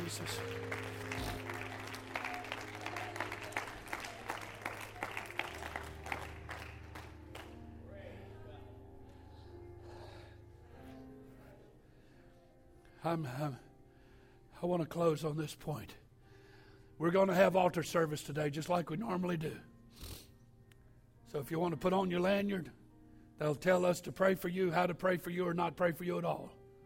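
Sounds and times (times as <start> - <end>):
audience clapping in praise: 0.0 - 7.6
speech: 0.1 - 0.9, 13.0 - 13.7, 14.6 - 16.0, 17.0 - 19.7, 21.3 - 22.8, 23.4 - 26.6.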